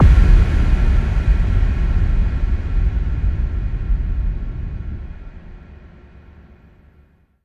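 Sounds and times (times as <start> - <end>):
explosions: 0.0 - 5.1
impact hits: 0.0 - 5.1.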